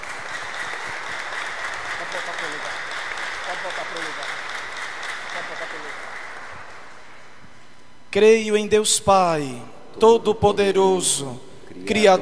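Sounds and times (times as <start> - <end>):
applause: 0.0 - 7.2
speech: 2.1 - 2.9, 3.5 - 4.4, 5.3 - 6.1, 8.1 - 12.2.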